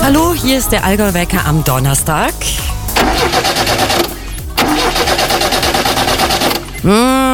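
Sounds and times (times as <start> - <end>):
speech: 0.1 - 4.1, 6.8 - 7.2
car engine cranking but failing to start: 2.6 - 6.9
person exclaiming: 6.8 - 7.3.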